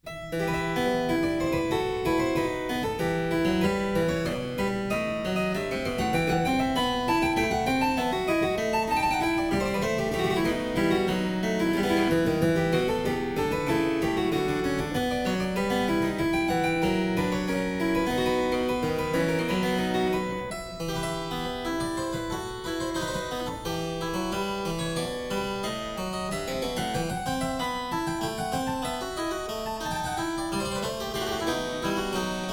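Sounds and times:
harpsichord piece in E minor: 0:00.0 - 0:32.5.

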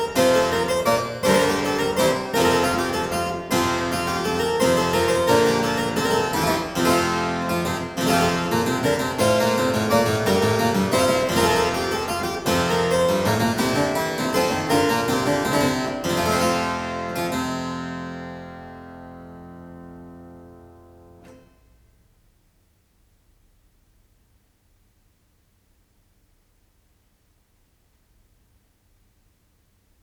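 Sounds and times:
harpsichord piece: 0:00.0 - 0:21.5.

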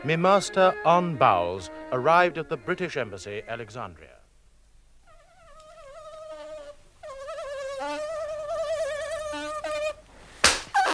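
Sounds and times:
flies buzzing on a hot afternoon at the British Embassy in Alexandria: 0:00.0 - 0:02.8, 0:05.0 - 0:10.1
speech: 0:00.0 - 0:04.2.

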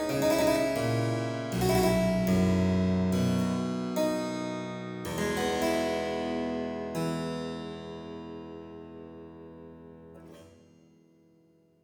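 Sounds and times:
harpsichord sarabande in F major: 0:00.0 - 0:06.9.

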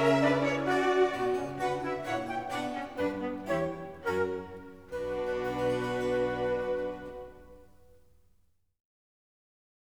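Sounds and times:
orchestral suite rondeau: 0:00.0 - 0:07.8.

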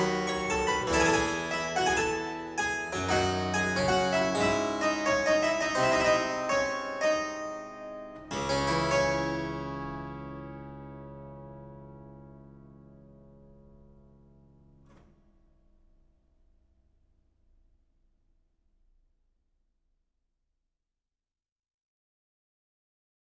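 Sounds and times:
harpsichord sarabande in D minor: 0:00.0 - 0:14.1.

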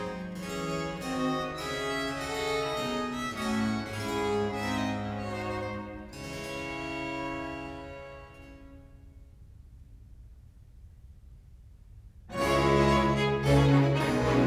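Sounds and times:
air, hornpipe and jig folk dance tunes: 0:00.0 - 0:08.9, 0:12.3 - 0:14.4.

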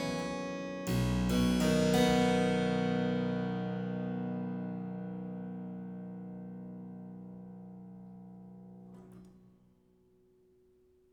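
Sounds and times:
harpsichord playing a sarabande in C major: 0:00.0 - 0:04.9.

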